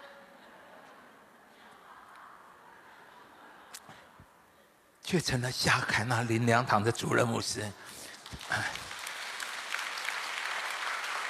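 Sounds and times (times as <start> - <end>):
speech: 5.1 - 8.8
audience applause: 7.9 - 11.2.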